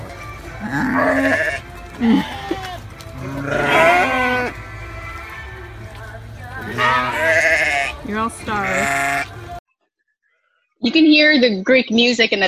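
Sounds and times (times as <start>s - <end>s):
lambs bleating while being fed: 0.5s - 5.2s, 6.6s - 9.3s
speech: 0.6s - 2.4s, 10.9s - 12.4s.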